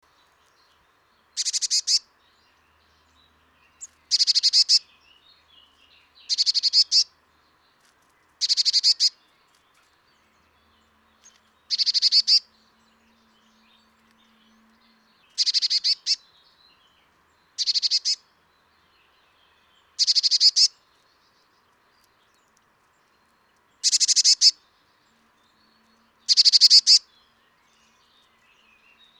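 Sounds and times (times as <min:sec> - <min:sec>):
Eurasian blue tit calls: 0:01.4 - 0:02.1, 0:03.8 - 0:04.9, 0:06.3 - 0:07.1, 0:08.4 - 0:09.2, 0:11.2 - 0:12.5, 0:15.3 - 0:16.2, 0:17.6 - 0:18.2, 0:20.0 - 0:20.7, 0:23.8 - 0:24.6, 0:26.2 - 0:27.1.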